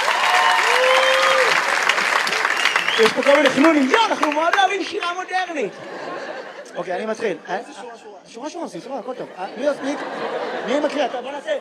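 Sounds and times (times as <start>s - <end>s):
applause: 0.0s - 5.2s
laughter: 2.1s - 8.1s, 8.9s - 11.5s
speech: 3.0s - 6.2s, 6.8s - 11.5s.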